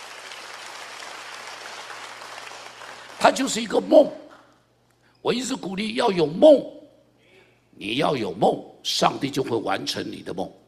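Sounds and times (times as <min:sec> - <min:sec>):
audience applause: 0:00.0 - 0:03.6
speech: 0:03.2 - 0:04.2, 0:05.2 - 0:06.8, 0:07.8 - 0:10.6.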